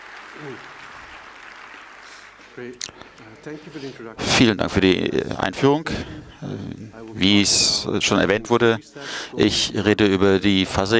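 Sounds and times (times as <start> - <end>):
audience applause: 0.0 - 4.1
speech: 0.4 - 0.8, 2.6 - 10.9.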